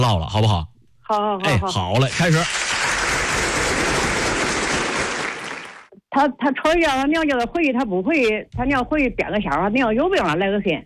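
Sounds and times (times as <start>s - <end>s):
speech: 0.0s - 2.6s, 6.2s - 10.8s
audience applause: 2.1s - 5.9s.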